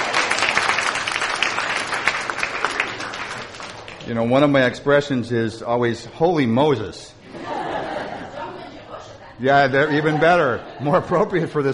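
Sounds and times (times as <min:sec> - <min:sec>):
audience applause: 0:00.0 - 0:04.1
speech: 0:04.1 - 0:07.2, 0:09.4 - 0:11.7
laughter: 0:07.2 - 0:11.7.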